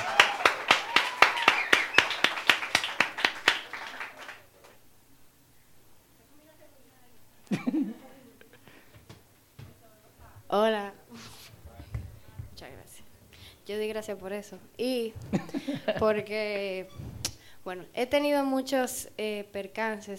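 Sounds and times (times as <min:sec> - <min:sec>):
audience applause: 0:00.0 - 0:04.5
speech: 0:13.7 - 0:20.1
laughter: 0:15.2 - 0:16.4.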